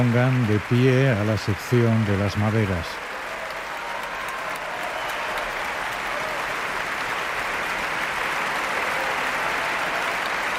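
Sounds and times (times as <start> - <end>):
speech: 0.0 - 3.1
audience applause and ovation for orchestra: 0.0 - 10.5.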